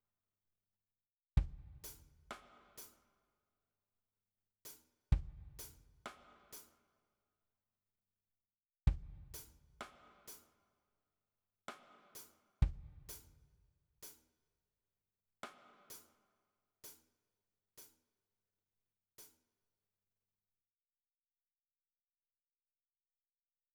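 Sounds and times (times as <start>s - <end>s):
drums: 1.4s - 3.0s, 4.7s - 6.8s, 8.9s - 10.5s, 11.7s - 14.3s, 15.4s - 16.2s, 16.8s - 17.1s.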